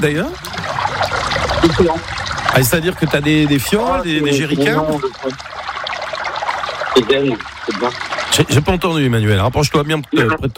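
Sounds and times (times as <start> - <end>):
speech: 0.0 - 5.5, 7.0 - 10.5
river water being poured: 0.0 - 10.5.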